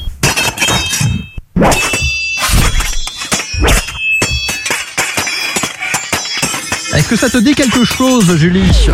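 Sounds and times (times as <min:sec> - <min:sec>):
swords clashing in a fight: 0:00.2 - 0:08.6
speech: 0:07.1 - 0:08.9.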